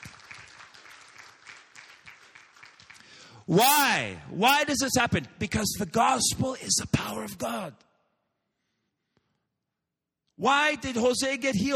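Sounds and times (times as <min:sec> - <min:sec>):
crowd applauding: 0:00.0 - 0:03.8
speech: 0:03.5 - 0:07.9, 0:10.4 - 0:11.7.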